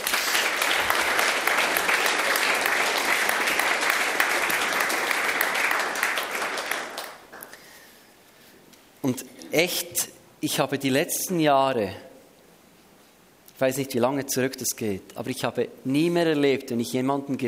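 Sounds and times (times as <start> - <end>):
audience applause: 0.0 - 7.5
speech: 9.0 - 12.1, 13.6 - 17.4.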